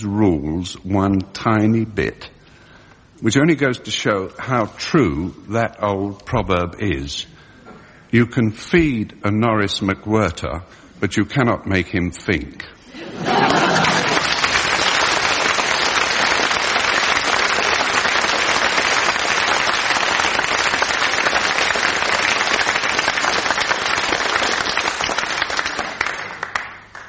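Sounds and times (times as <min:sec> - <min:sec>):
speech: 0:00.0 - 0:02.4, 0:03.2 - 0:07.4, 0:08.1 - 0:13.8
laughter: 0:12.9 - 0:14.7
audience applause: 0:13.3 - 0:27.0.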